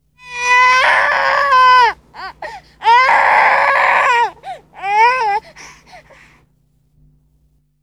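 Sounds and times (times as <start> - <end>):
baby crying: 0.2 - 6.3.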